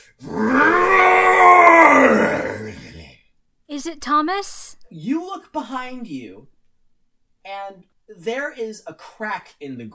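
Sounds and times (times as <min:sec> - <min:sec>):
speech: 0:00.0 - 0:00.5, 0:03.8 - 0:06.6, 0:07.4 - 0:09.9
voice imitating an enormous guttural roar: 0:00.2 - 0:03.0.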